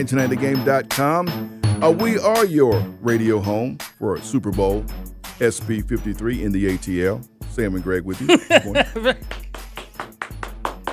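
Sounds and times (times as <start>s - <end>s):
speech: 0.0s - 9.4s
laughter: 8.2s - 9.2s
hand clapping: 8.6s - 10.9s.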